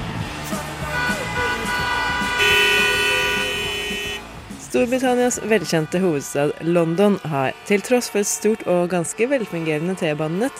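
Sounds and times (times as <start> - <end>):
car horns honking in city traffic: 0.8 - 4.3
speech: 4.7 - 10.5.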